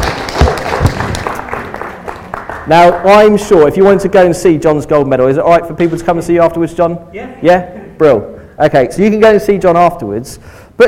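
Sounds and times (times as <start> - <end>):
round of applause: 0.0 - 3.0
speech: 2.7 - 10.8.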